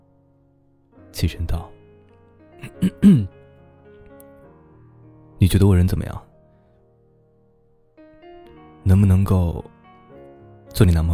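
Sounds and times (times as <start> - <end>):
speech: 1.1 - 1.8, 2.6 - 3.4, 5.4 - 6.3, 8.9 - 9.7, 10.8 - 11.1
person clearing throat: 2.6 - 3.3.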